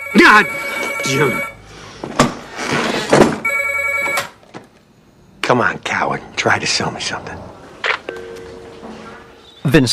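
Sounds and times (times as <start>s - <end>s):
telephone ringing: 0.0s - 1.6s, 3.4s - 4.4s
speech: 0.1s - 2.2s, 5.5s - 7.5s, 9.7s - 9.9s.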